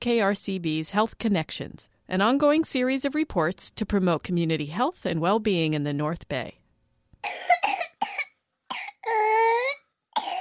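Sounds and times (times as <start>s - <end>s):
speech: 0.0s - 6.6s, 7.2s - 7.6s
22-month-old baby's hacking whooping cough: 7.2s - 10.3s.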